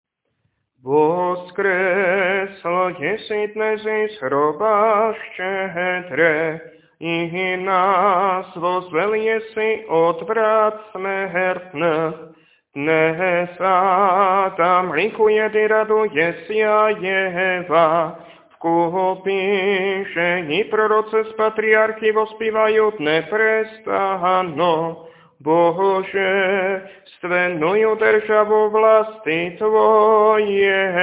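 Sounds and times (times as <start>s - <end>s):
Sunday kontakion chant in tone three: 0.9s - 31.0s.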